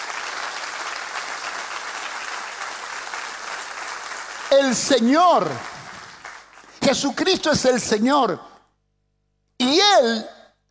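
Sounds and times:
audience applause: 0.0s - 6.8s
speech: 4.5s - 5.7s, 6.9s - 8.5s, 9.6s - 10.6s.

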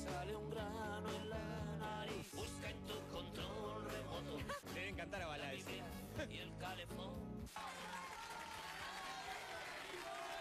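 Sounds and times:
speech: 0.2s - 7.7s
audience applause: 7.5s - 10.3s.

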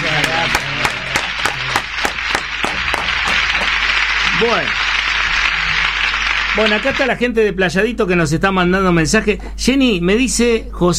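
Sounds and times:
people clapping rhythmically: 0.0s - 7.3s
speech: 4.4s - 4.9s, 6.6s - 10.9s.

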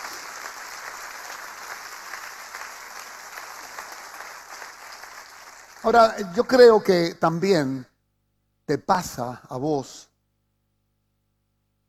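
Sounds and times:
applause: 0.0s - 6.8s
speech: 5.8s - 7.9s, 8.7s - 10.1s.

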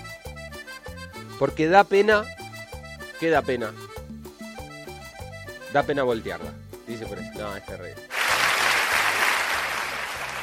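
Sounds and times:
speech: 1.4s - 2.4s, 3.2s - 3.9s, 5.7s - 8.1s
applause: 8.1s - 10.4s.

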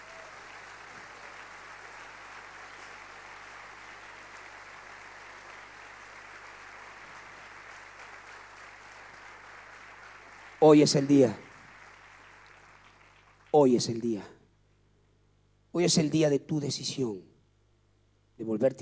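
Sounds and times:
large crowd applauding: 0.0s - 14.1s
speech: 10.6s - 11.5s, 13.6s - 14.4s, 15.8s - 17.3s, 18.4s - 18.7s.

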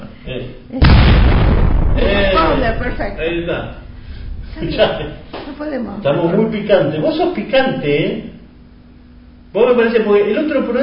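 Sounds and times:
speech: 0.3s - 1.1s, 2.7s - 3.8s, 4.5s - 8.3s, 9.5s - 10.8s
bomb explosion sound effect: 0.8s - 5.6s.

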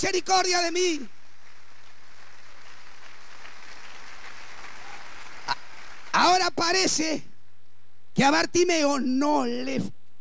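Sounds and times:
speech: 0.0s - 1.2s, 6.2s - 7.3s, 8.2s - 10.0s
audience applauding: 1.1s - 6.4s.

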